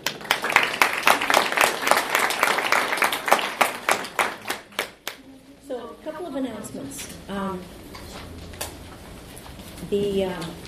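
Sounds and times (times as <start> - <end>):
audience applause: 0.0 - 5.2
speech: 6.4 - 7.8, 9.9 - 10.6.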